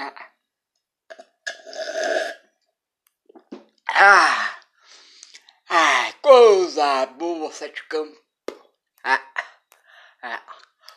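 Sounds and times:
person taking a small sip of drink: 1.1s - 2.5s
speech: 4.0s - 4.5s, 6.8s - 8.3s, 9.0s - 9.3s, 10.2s - 10.4s.

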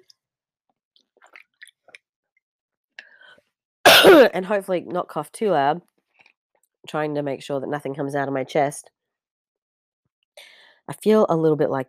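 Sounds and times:
person taking a big swig of water: 1.2s - 2.0s
speech: 4.1s - 5.9s, 6.9s - 9.0s, 10.4s - 11.8s.

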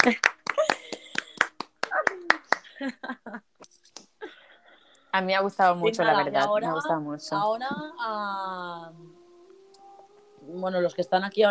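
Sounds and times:
speech: 0.0s - 0.3s, 5.2s - 9.0s, 10.6s - 11.4s
laughter: 0.0s - 1.4s
applause, hand clapping: 0.0s - 2.7s.

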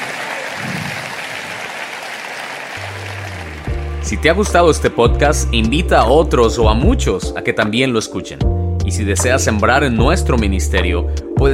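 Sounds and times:
loud applause: 0.0s - 5.8s
speech: 4.1s - 11.5s.

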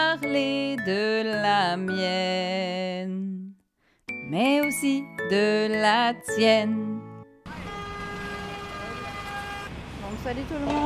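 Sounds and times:
speech: 0.2s - 3.4s, 4.3s - 7.0s, 10.2s - 10.8s
car horns honking in city street: 7.4s - 9.8s.

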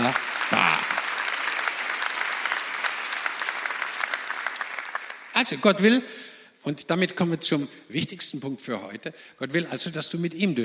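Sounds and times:
speech: 0.0s - 0.8s, 5.4s - 10.6s
audience clapping: 0.0s - 5.9s.

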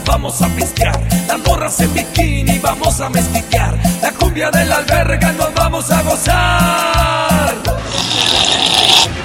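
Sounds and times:
speech: 0.2s - 8.2s
sip of tea: 7.9s - 9.1s.

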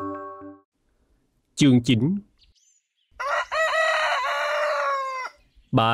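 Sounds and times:
speech: 1.6s - 2.3s, 5.7s - 5.9s
young rooster crowing at home in the morning: 3.2s - 5.4s.

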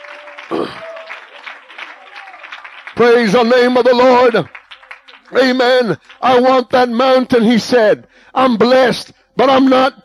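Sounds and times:
round of applause: 0.0s - 7.0s
speech: 0.6s - 0.9s, 3.0s - 4.6s, 5.3s - 10.0s.

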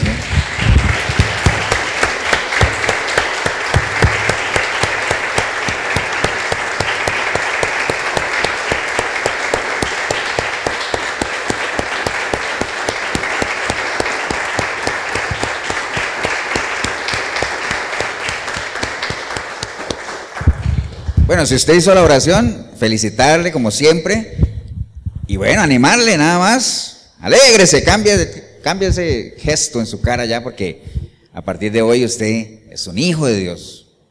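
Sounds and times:
audience applause: 0.0s - 20.7s
speech: 21.4s - 24.3s, 25.4s - 33.8s.

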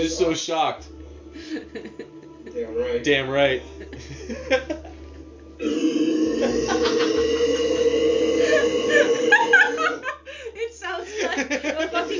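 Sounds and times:
speech: 0.0s - 2.0s, 2.6s - 4.9s
laughter: 1.4s - 2.6s, 3.6s - 5.2s, 6.2s - 12.1s
long drawn-out burp: 5.6s - 10.0s.

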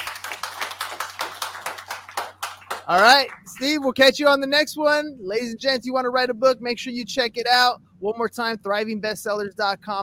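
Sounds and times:
audience round of applause: 0.0s - 3.8s
speech: 2.9s - 10.0s.

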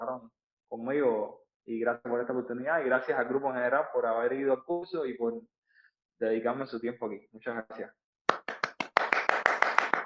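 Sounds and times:
speech: 0.2s - 5.6s, 6.2s - 8.0s
steady hand claps: 8.3s - 10.0s.

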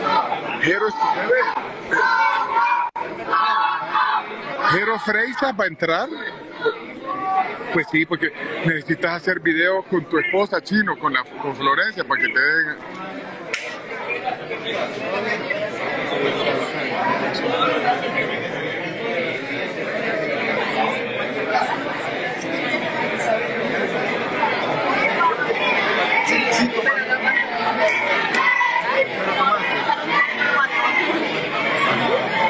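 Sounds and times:
crowd of people shouting: 0.0s - 8.6s, 10.0s - 32.4s
speech: 0.6s - 2.2s, 4.7s - 6.9s, 7.5s - 13.4s, 14.6s - 18.8s.

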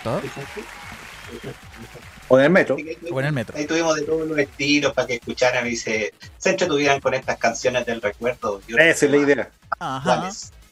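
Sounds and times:
applause: 0.0s - 3.5s
speech: 0.0s - 10.6s.

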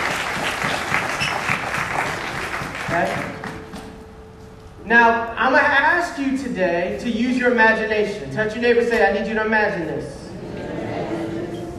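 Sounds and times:
crowd applauding: 0.0s - 4.0s
speech: 2.9s - 3.3s, 4.9s - 10.2s.

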